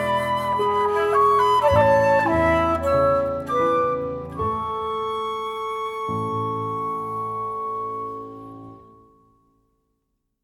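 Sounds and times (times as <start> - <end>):
clarinet: 0.0 - 9.4
transverse flute: 0.0 - 9.5
piano: 0.0 - 10.3.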